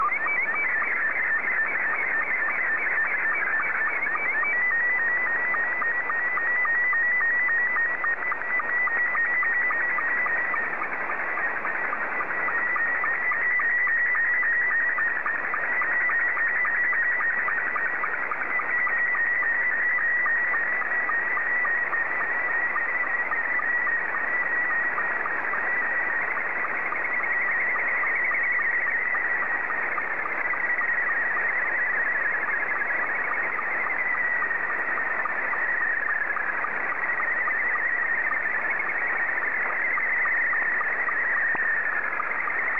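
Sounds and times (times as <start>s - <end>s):
SSTV Scottie 2 signal: 0.0s - 42.7s.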